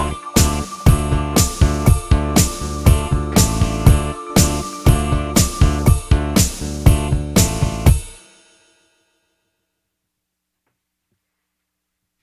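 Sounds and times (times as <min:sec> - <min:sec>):
soundcheck: 0:00.0 - 0:08.0.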